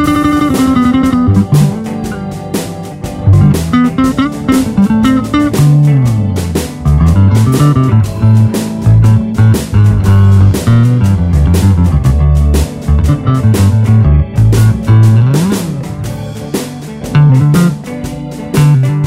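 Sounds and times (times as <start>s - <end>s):
Chicago blues solo bass in D at 120: 0.0s - 19.0s.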